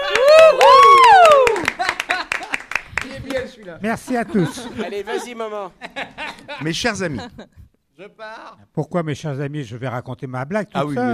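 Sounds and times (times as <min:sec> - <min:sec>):
loud sliding vocal whoop: 0:00.0 - 0:01.7
audience clapping on a French comedy joke show: 0:00.0 - 0:03.8
laughter: 0:01.6 - 0:07.6
speech: 0:03.8 - 0:11.1.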